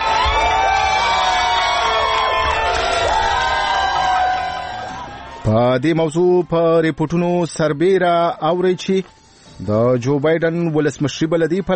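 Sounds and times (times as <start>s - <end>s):
crowd in America cheering Biden's election victory announcement: 0.0s - 7.2s
speech: 5.5s - 11.7s.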